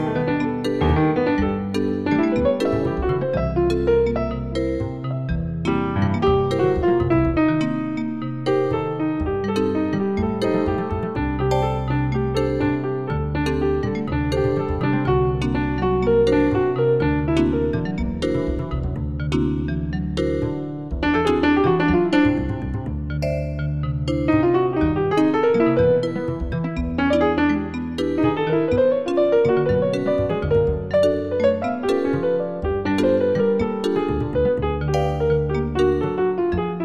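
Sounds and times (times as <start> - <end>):
bass: 0.0 - 36.8
piano: 0.0 - 36.8
vibraphone: 0.0 - 36.8.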